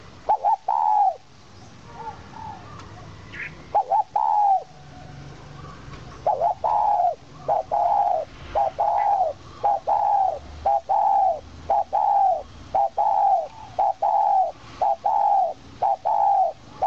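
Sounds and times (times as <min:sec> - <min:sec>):
owl call: 0:00.3 - 0:01.2, 0:03.7 - 0:04.7, 0:06.2 - 0:16.8.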